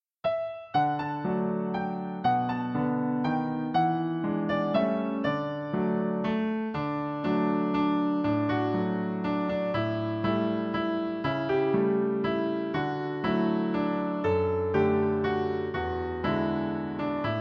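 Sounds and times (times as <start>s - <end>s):
instrumental music: 0.2s - 17.4s.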